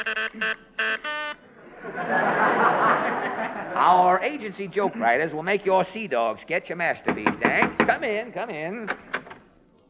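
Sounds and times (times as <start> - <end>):
speech: 0.0 - 1.2, 1.8 - 9.2
office intercom buzzer: 0.0 - 1.5
laughter: 1.4 - 5.6.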